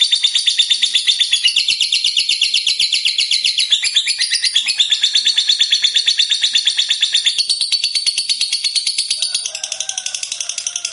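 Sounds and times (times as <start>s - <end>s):
fighter-type lovebird chattering trill: 0.0s - 10.9s.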